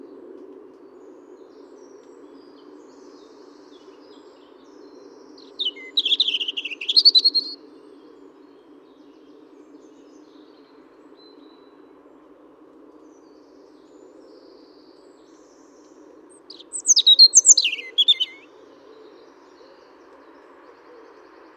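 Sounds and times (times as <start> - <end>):
European robin Erithacus rubecula singing: 5.4 - 7.6, 16.5 - 18.5.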